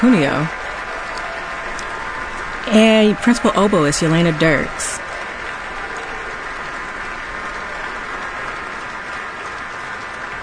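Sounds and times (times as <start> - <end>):
speech: 0.0 - 0.6, 2.7 - 5.0
concert audience applause: 0.0 - 10.4.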